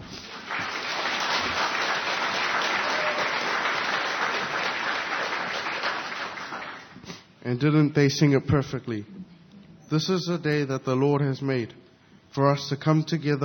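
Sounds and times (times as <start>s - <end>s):
warm round of applause: 0.0s - 7.1s
speech: 7.4s - 9.2s, 9.9s - 13.4s.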